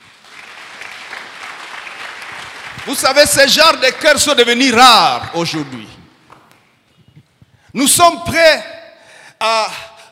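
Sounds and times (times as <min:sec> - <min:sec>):
congregation clapping: 0:00.0 - 0:06.6
speech: 0:02.8 - 0:06.0, 0:07.8 - 0:08.7, 0:09.4 - 0:09.8.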